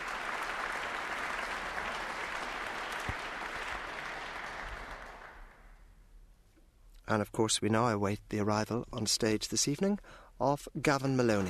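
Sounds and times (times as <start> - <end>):
concert hall audience applause: 0.0 - 5.8
speech: 7.1 - 11.4.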